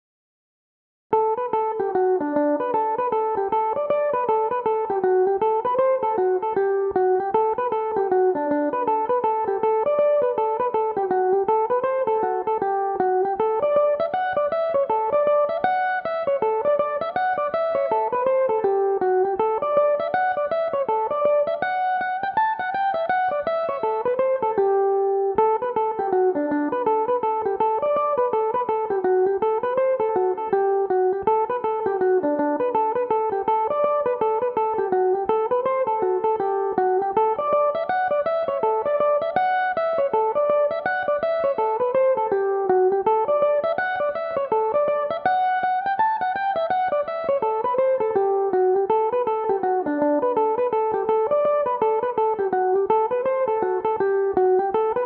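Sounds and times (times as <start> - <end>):
mandolin in D major: 1.1 - 55.0.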